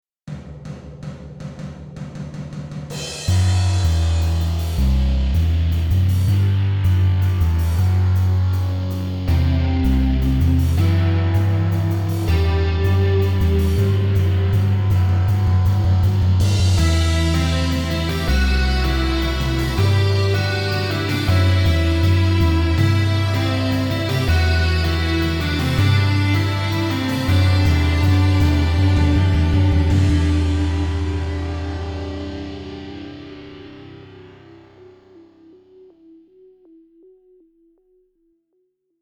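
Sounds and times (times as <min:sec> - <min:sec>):
drum version of a title theme: 0:00.3 - 0:34.7.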